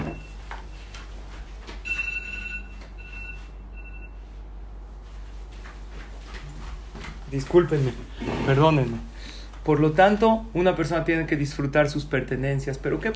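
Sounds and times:
small alarm ringing: 0:01.8 - 0:04.2
speech: 0:07.3 - 0:13.1.

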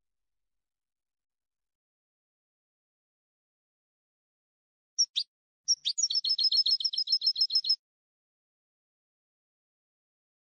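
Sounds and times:
European goldfinch twittering: 0:05.0 - 0:07.8.

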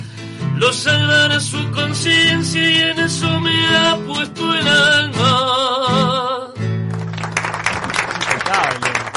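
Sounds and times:
speech: 0:00.6 - 0:05.7
applause: 0:06.9 - 0:09.1.

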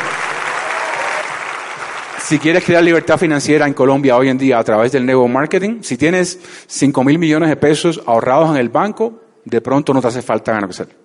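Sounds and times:
audience applause: 0:00.0 - 0:03.0
speech: 0:02.3 - 0:11.0.

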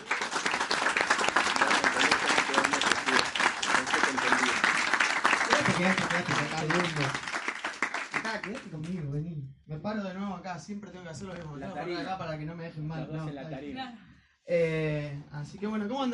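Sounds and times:
audience applause: 0:00.0 - 0:08.7
speech: 0:05.8 - 0:07.3, 0:08.4 - 0:16.1.

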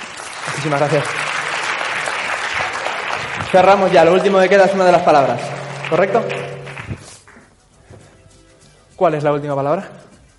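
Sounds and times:
audience applause: 0:00.0 - 0:07.1
speech: 0:00.5 - 0:01.2, 0:03.5 - 0:06.4, 0:09.0 - 0:10.0.

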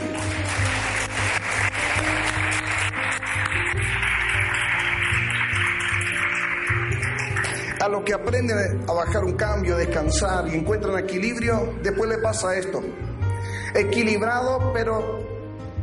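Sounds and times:
crowd clapping: 0:00.0 - 0:08.2
speech: 0:07.9 - 0:13.0, 0:13.8 - 0:15.2.

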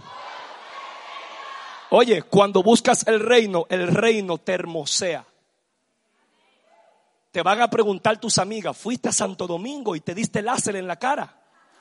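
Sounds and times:
crowd shouting a phrase together: 0:00.0 - 0:01.9
speech: 0:01.9 - 0:05.3, 0:07.4 - 0:11.4.

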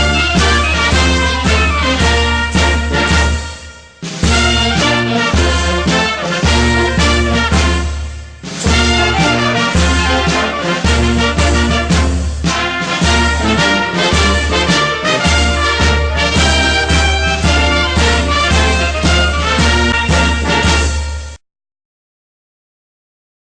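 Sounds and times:
Peruvian military march music: 0:00.0 - 0:21.4.

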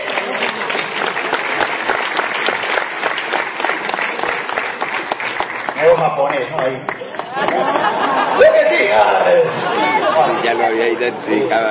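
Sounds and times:
audience applause: 0:00.0 - 0:08.8
speech: 0:06.0 - 0:11.6
laughter: 0:07.0 - 0:11.2.

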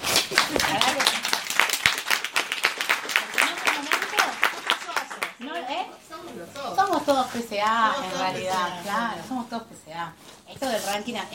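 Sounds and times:
audience applause: 0:00.0 - 0:05.5
speech: 0:07.1 - 0:11.3.

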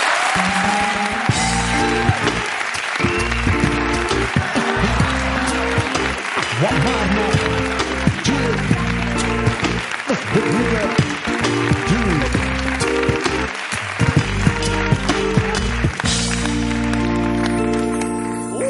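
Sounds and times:
studio audience applause: 0:00.0 - 0:18.6.

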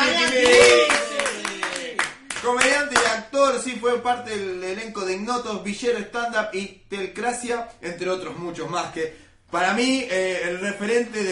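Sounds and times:
audience applause: 0:00.0 - 0:02.6
speech: 0:03.5 - 0:11.2.

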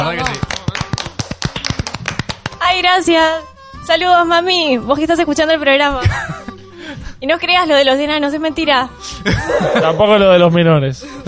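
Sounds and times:
a few people clapping: 0:00.0 - 0:02.7
speech: 0:02.8 - 0:06.4, 0:07.2 - 0:11.2
laughter: 0:09.2 - 0:10.3.

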